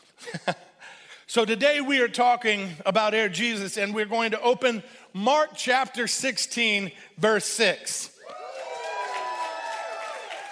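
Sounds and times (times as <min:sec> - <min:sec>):
speech: 0:00.4 - 0:00.6, 0:01.3 - 0:08.1
audience cheering: 0:08.2 - 0:10.4.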